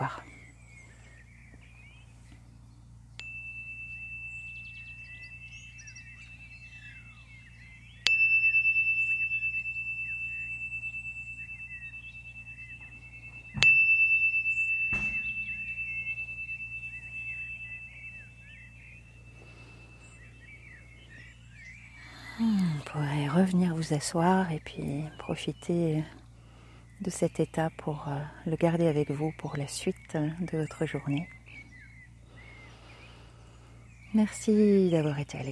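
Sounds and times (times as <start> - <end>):
speech: 0.0 - 0.3, 22.4 - 26.2, 27.0 - 31.4, 34.1 - 35.5
small chime rung: 3.2 - 6.9, 8.0 - 20.4.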